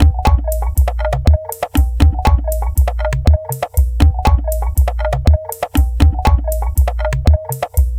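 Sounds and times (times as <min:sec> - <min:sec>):
bamboo mbira beat: 0:00.0 - 0:07.9.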